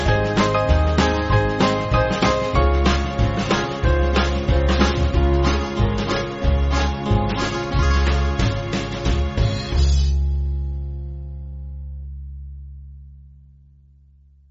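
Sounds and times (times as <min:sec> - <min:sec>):
band playing: 0:00.0 - 0:10.3.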